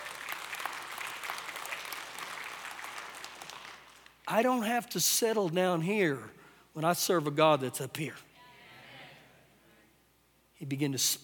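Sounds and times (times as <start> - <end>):
audience clapping: 0.0 - 4.3
speech: 4.3 - 8.3, 10.6 - 11.2.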